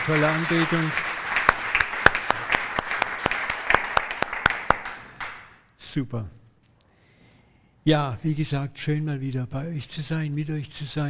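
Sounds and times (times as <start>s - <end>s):
speech: 0.0s - 1.1s, 6.0s - 6.4s, 7.8s - 11.0s
audience applause for the band: 0.0s - 5.5s.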